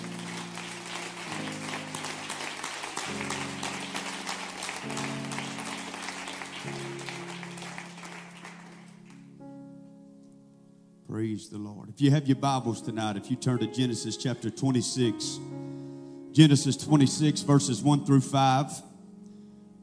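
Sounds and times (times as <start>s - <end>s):
audience hand clapping: 0.0s - 9.4s
speech: 11.1s - 15.5s, 16.4s - 18.9s.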